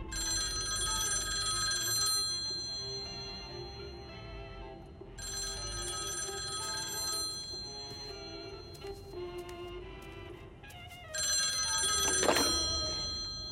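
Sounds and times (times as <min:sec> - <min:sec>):
telephone ringing: 0:00.1 - 0:09.4, 0:11.2 - 0:13.5.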